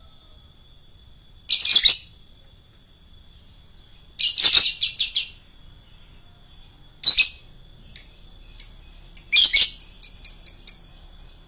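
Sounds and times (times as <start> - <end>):
lovebird shrill chatters: 3.8 - 5.4, 7.0 - 11.4.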